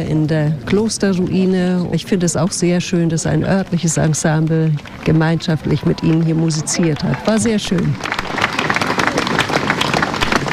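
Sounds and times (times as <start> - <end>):
speech: 0.0 - 8.6
concert audience applause: 4.0 - 10.5.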